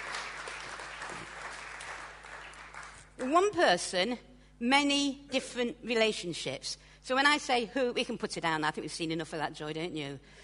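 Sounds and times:
audience clapping: 0:00.0 - 0:03.3
speech: 0:03.2 - 0:10.4.

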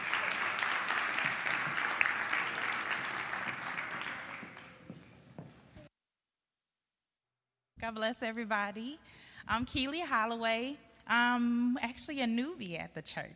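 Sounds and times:
church audience clapping: 0:00.0 - 0:05.2
speech: 0:07.8 - 0:13.3.

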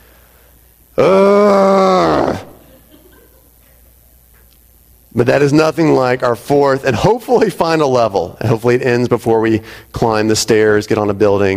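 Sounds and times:
person imitating a frustrated growl: 0:01.0 - 0:02.6
laughter: 0:02.6 - 0:03.8
speech: 0:05.2 - 0:11.5.

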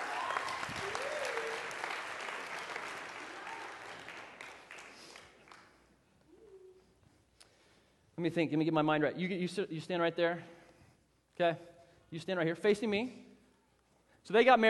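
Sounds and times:
audience applause: 0:00.0 - 0:05.7
speech: 0:08.2 - 0:10.6, 0:11.4 - 0:13.3, 0:14.2 - 0:14.6.

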